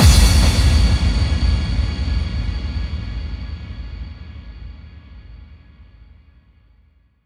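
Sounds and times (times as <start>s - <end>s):
bass drum kick with reverb: 0.0s - 5.5s.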